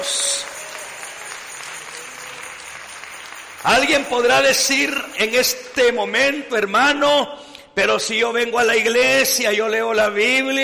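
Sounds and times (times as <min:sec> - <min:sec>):
audience applause: 0:00.0 - 0:05.7
speech: 0:03.6 - 0:10.6.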